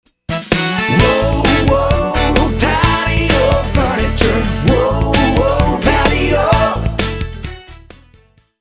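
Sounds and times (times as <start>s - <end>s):
furniture store advertising jingle: 0.3s - 7.9s.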